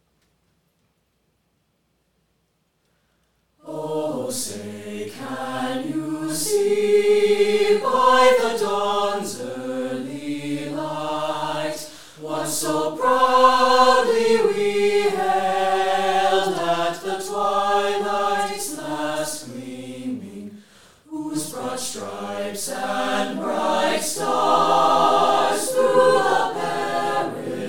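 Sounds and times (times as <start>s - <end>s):
concert choir singing: 3.6s - 27.6s.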